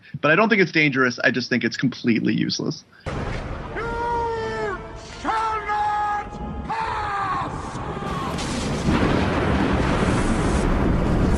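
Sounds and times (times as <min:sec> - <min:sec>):
speech: 0:00.1 - 0:03.2
lightning crash thunder sound effect: 0:03.1 - 0:05.6, 0:06.4 - 0:11.3.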